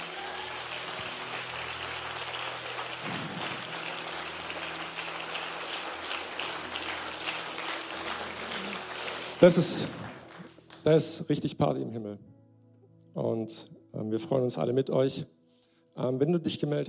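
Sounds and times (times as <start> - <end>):
audience applause: 0.0 - 10.6
speech: 9.4 - 10.0, 10.8 - 12.3, 13.2 - 15.4, 16.0 - 16.8.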